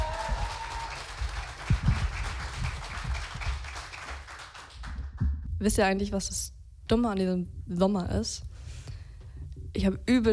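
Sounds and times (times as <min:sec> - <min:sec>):
audience applause: 0:00.0 - 0:05.2
speech: 0:05.6 - 0:08.5, 0:09.8 - 0:10.3.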